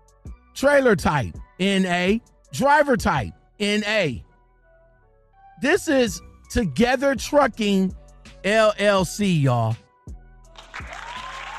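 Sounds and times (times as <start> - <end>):
speech: 0.6 - 4.3, 5.6 - 9.8
applause sound effect: 10.5 - 11.5.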